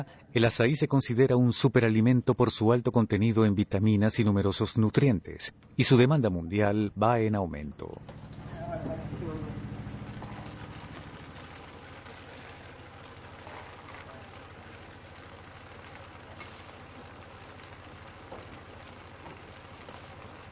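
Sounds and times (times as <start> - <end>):
speech: 0.0 - 8.3
cooperative boat engine droning while carrying the açaí harvest: 8.0 - 14.5.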